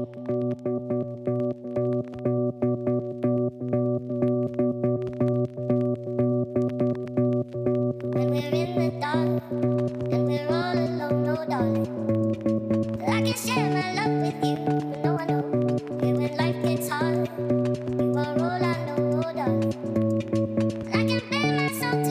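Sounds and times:
speech: 0.0s - 1.8s
buzzy synth chords in an electronic music track: 0.0s - 22.0s
person singing in a high voice: 8.2s - 22.0s.

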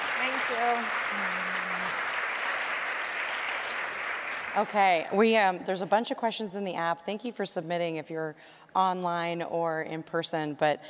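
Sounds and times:
audience applause: 0.0s - 5.4s
speech: 0.2s - 2.1s, 4.5s - 10.8s.

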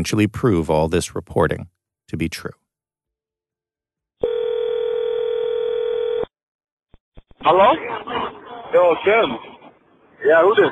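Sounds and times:
speech: 0.0s - 2.6s, 7.4s - 9.5s, 10.2s - 10.6s
telephone dial tone: 4.2s - 6.3s.

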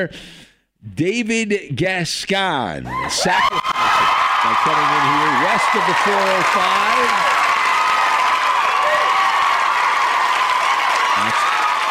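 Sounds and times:
speech: 0.0s - 3.7s, 4.4s - 7.4s
crowd cheering and applause sound effect: 2.9s - 11.8s.

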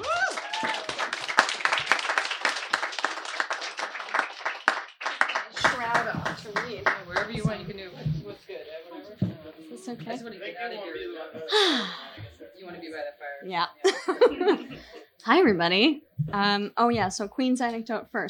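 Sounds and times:
audience applause: 0.0s - 7.5s
speech: 9.9s - 12.0s, 12.8s - 14.6s, 15.3s - 18.2s
laughter: 13.8s - 15.1s.

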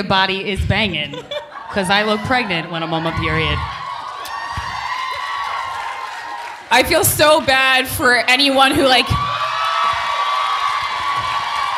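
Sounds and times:
speech: 0.0s - 3.8s, 6.7s - 9.3s
laughter: 1.0s - 3.4s
faint crowd cheering: 1.8s - 7.8s, 8.7s - 11.7s
audience clapping: 3.7s - 11.7s.

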